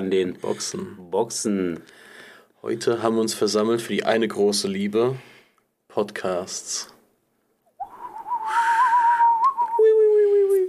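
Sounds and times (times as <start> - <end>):
speech: 0.1 - 5.3, 6.0 - 7.0
person whistling imitating white doves: 7.8 - 10.6.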